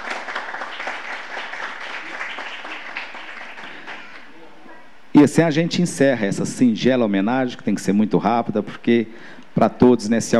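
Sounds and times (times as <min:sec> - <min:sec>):
audience applause: 0:00.0 - 0:04.3
speech: 0:05.2 - 0:10.3.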